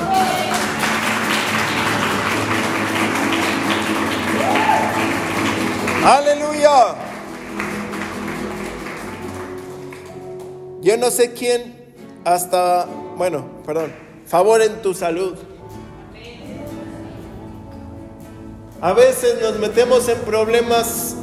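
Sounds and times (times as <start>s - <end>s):
audience applause: 0.0s - 10.6s
speech: 6.0s - 6.3s, 11.0s - 15.5s, 18.8s - 21.1s.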